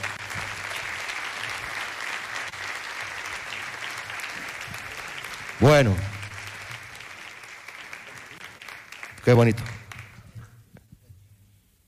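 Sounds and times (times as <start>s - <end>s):
audience applause: 0.0s - 10.5s
speech: 5.6s - 6.1s, 9.3s - 9.8s.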